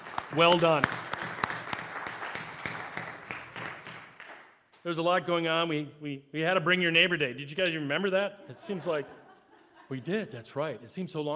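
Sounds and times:
audience applause: 0:00.0 - 0:04.6
speech: 0:00.4 - 0:01.0, 0:04.8 - 0:09.2, 0:09.9 - 0:11.3
laughter: 0:08.2 - 0:10.3.

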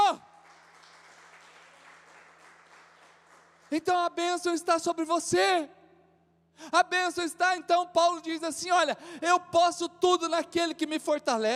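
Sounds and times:
audience applause: 0:00.4 - 0:03.7
speech: 0:03.7 - 0:05.8, 0:06.6 - 0:11.5.

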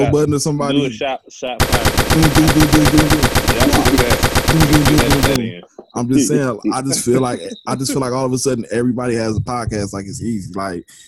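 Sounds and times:
laughter: 0:00.0 - 0:10.9
speech: 0:00.0 - 0:11.0
machine-gun-style gunshot sound effect: 0:01.6 - 0:05.4.

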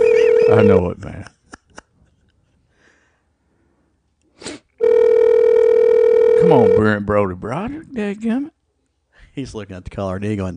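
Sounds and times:
phone call ringing tone: 0:00.0 - 0:00.8, 0:04.8 - 0:07.0
speech: 0:00.5 - 0:01.4, 0:06.5 - 0:08.6, 0:09.4 - 0:10.5.

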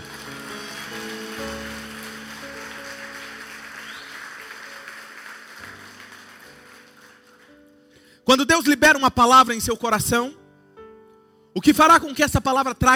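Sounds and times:
audience applauding: 0:00.0 - 0:07.7
speech: 0:08.3 - 0:10.4, 0:11.6 - 0:12.9.

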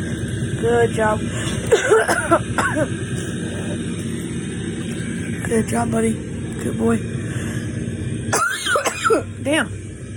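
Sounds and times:
low hum: 0:00.0 - 0:10.1
speech: 0:00.6 - 0:03.2, 0:05.5 - 0:07.2, 0:09.4 - 0:09.8
person coughing: 0:01.6 - 0:03.0, 0:08.3 - 0:09.3.

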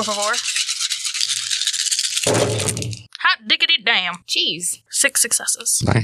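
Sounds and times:
speech: 0:00.0 - 0:00.8, 0:04.2 - 0:06.0
dice being rolled: 0:00.0 - 0:03.1.

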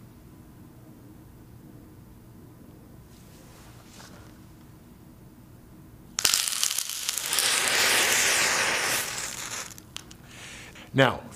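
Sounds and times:
potassium chlorate and sugar mixture burning: 0:06.2 - 0:10.8
speech: 0:10.9 - 0:11.3.

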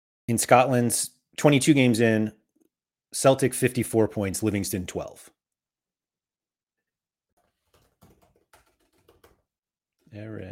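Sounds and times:
speech: 0:00.3 - 0:02.4, 0:03.1 - 0:05.4, 0:10.1 - 0:10.5
typing on a computer keyboard: 0:07.4 - 0:09.5.

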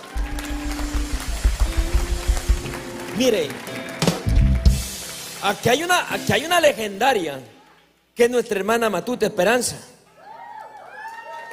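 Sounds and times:
audience applause: 0:00.0 - 0:06.4, 0:10.2 - 0:11.5
speech: 0:03.2 - 0:03.7, 0:05.4 - 0:07.5, 0:08.2 - 0:10.0.

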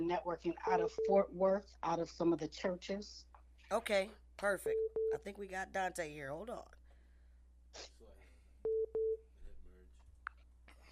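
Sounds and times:
speech: 0:00.0 - 0:06.8, 0:07.7 - 0:08.1
phone line connecting tones for an incoming caller: 0:00.6 - 0:01.3
quiet talk: 0:09.3 - 0:10.0.

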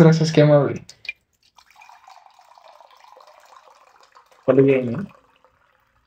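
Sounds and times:
speech: 0:00.0 - 0:01.0, 0:04.5 - 0:05.2
water poured into a cup: 0:01.4 - 0:06.0.

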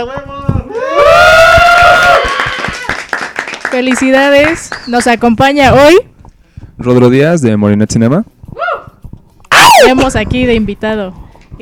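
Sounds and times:
speech: 0:00.0 - 0:00.4, 0:03.8 - 0:06.1, 0:06.8 - 0:08.4, 0:09.8 - 0:11.6
loud applause and cheering: 0:00.7 - 0:04.9.

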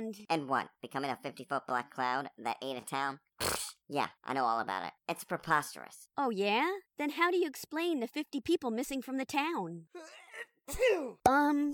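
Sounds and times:
speech: 0:00.0 - 0:11.7
person sneezing: 0:03.4 - 0:03.8.

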